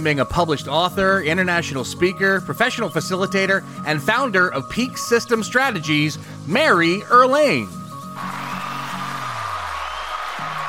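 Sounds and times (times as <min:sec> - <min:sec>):
speech: 0:00.0 - 0:07.8
crowd applause: 0:08.2 - 0:10.6.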